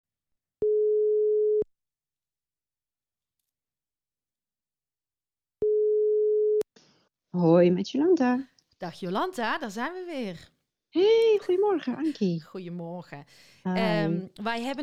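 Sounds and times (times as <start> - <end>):
telephone ringback tone heard while calling someone: 0.6 - 1.6, 5.6 - 6.6
speech: 7.4 - 14.8.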